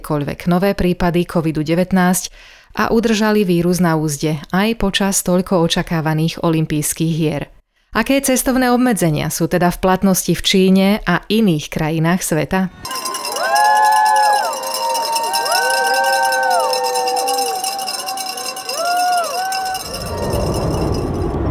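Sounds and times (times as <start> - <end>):
speech: 0.0 - 13.1
crowd of US Olympic athletes boarding a plane at Los Angeles airport: 12.8 - 21.4.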